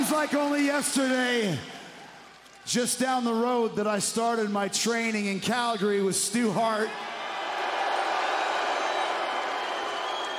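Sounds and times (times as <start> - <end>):
speech: 0.2 - 1.8, 2.6 - 7.2
crowd booing: 7.0 - 10.3.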